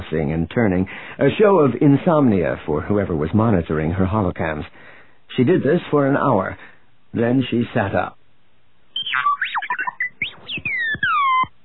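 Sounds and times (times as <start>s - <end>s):
speech: 0.1s - 8.2s
robot beeping: 9.0s - 11.5s.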